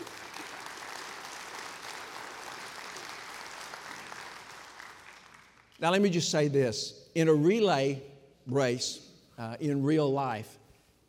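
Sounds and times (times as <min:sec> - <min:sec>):
audience applause: 0:00.0 - 0:05.8
speech: 0:05.8 - 0:10.6.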